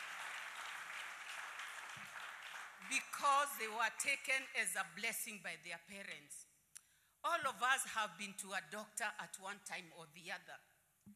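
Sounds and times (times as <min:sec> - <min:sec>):
audience clapping: 0:00.0 - 0:03.2
speech: 0:02.8 - 0:06.5, 0:07.2 - 0:10.7.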